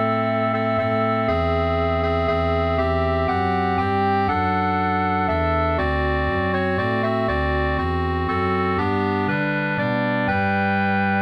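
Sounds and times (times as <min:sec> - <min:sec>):
waltz bass melody: 0:00.0 - 0:11.1.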